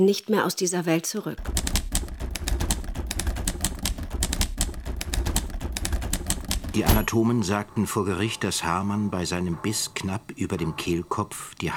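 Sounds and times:
speech: 0.0s - 1.6s, 6.8s - 11.7s
typewriter keys clacking as someone types a book in a study: 1.4s - 7.2s.

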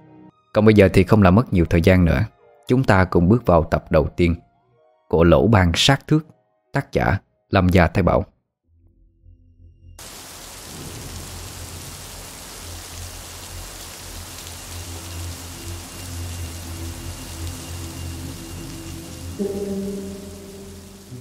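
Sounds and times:
speech: 0.5s - 4.4s, 5.1s - 8.3s
steady rain: 10.0s - 21.1s.

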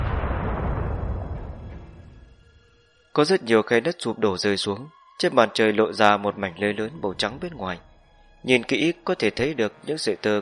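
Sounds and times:
loud explosion: 0.0s - 2.4s
speech: 3.2s - 10.4s.

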